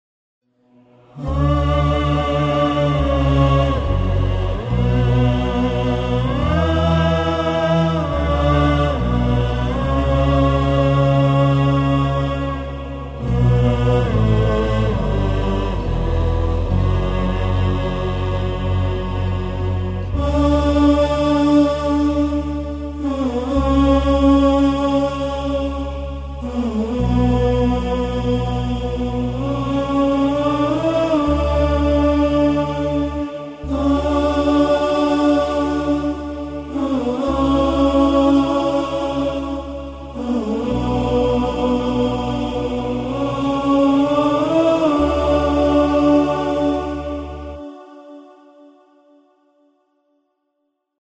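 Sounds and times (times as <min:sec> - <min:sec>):
vocal: 0:00.6 - 0:49.3.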